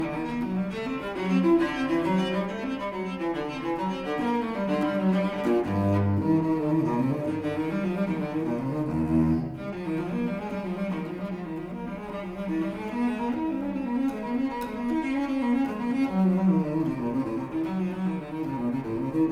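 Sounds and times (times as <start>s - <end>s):
solo cello piece in E flat major: 0.0s - 19.2s.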